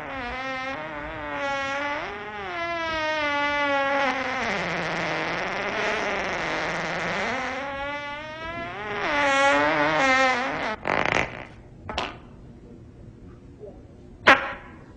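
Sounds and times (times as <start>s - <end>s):
fart: 0.0s - 11.6s.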